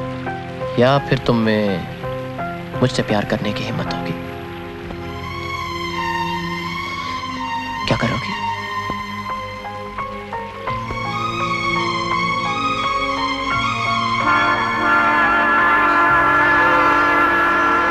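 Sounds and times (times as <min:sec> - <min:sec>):
train rumble: 0:00.0 - 0:17.9
speech: 0:00.8 - 0:01.9, 0:02.8 - 0:04.3, 0:07.9 - 0:08.5
train horn-like tones: 0:13.4 - 0:17.9.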